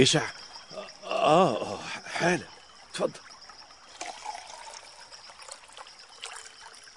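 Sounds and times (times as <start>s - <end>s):
speech: 0.0s - 0.4s, 1.2s - 3.3s
lake water pouring in a thin trickle: 2.0s - 6.9s.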